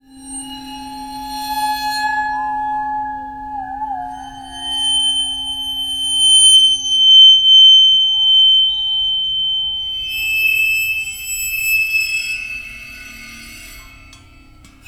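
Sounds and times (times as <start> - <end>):
waterphone: 0.0 - 14.8.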